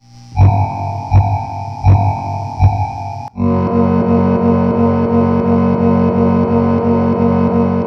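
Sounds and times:
steady filtered electronic beat: 0.4 - 3.4
modified Yamaha keyboard processed distorted melody: 0.4 - 7.8.

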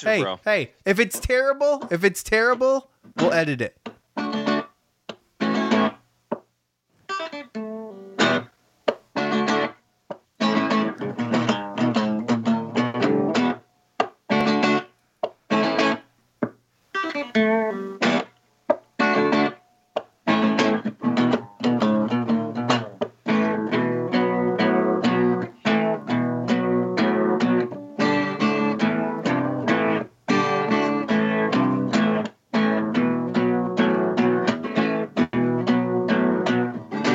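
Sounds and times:
speech: 0.0 - 4.5, 7.3 - 8.4
Les Paul electric guitar being played: 4.2 - 4.7, 5.4 - 6.0, 7.1 - 8.5, 9.2 - 9.8, 10.4 - 13.6, 14.3 - 14.9, 15.5 - 16.0, 17.0 - 18.3, 19.0 - 19.6, 20.2 - 37.1.

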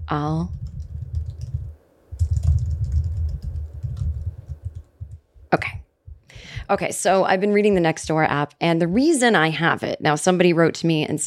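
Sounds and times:
speech: 0.1 - 0.7, 6.7 - 11.2
computer keyboard typing at a table: 0.5 - 5.2.

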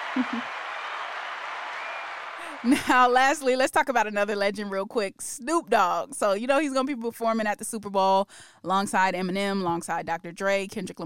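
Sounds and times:
applause: 0.0 - 3.0
speech: 0.2 - 0.6, 2.6 - 11.0.

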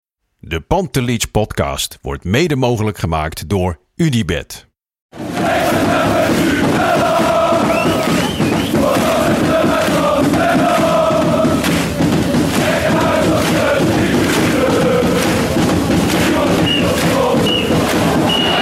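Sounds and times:
speech: 0.4 - 7.1
football stadium crowd roaring and chanting: 5.2 - 18.6
high whistle tones: 7.6 - 8.8, 16.6 - 18.6.

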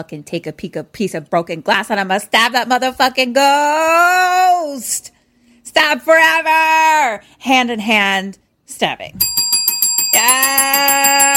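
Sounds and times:
speech: 0.0 - 5.2, 5.8 - 11.3
double bell ding: 9.2 - 11.3.

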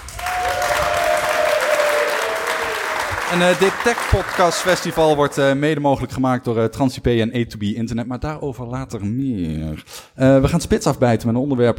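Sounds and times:
audience applause: 0.0 - 5.6
speech: 3.3 - 11.7.

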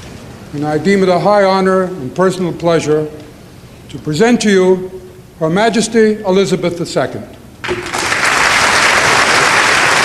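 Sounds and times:
speech: 0.5 - 3.3, 3.9 - 7.9
large crowd applauding in a standing ovation: 7.6 - 10.0.

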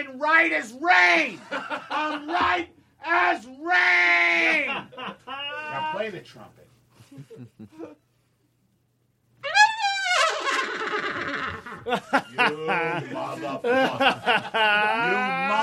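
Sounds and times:
speech: 0.2 - 6.6, 11.8 - 15.6
laughter: 1.4 - 2.6, 4.4 - 5.9, 7.0 - 8.0, 10.4 - 15.6
voice imitating a horse whinny: 9.4 - 11.9.

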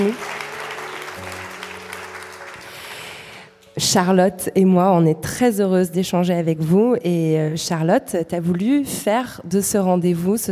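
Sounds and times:
speech: 0.0 - 0.3, 3.8 - 10.5
audience applauding: 0.0 - 3.6.

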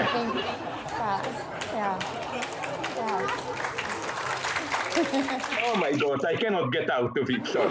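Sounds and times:
laughter: 0.0 - 6.1, 7.4 - 7.6
audience applauding and cheering: 2.0 - 6.2
speech: 5.1 - 7.6.

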